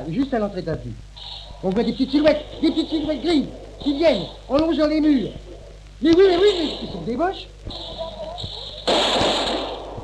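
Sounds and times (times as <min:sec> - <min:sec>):
speech: 0:00.0 - 0:07.9
gunfire from a street barricade: 0:08.8 - 0:10.0.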